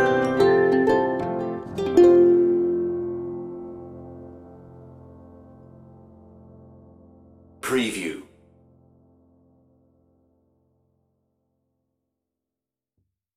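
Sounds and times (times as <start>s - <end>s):
toy box underscore music: 0.0s - 8.4s.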